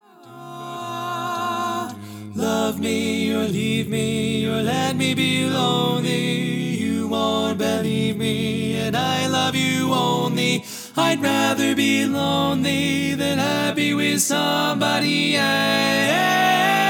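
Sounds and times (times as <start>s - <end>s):
tenor singing: 0.1s - 16.8s.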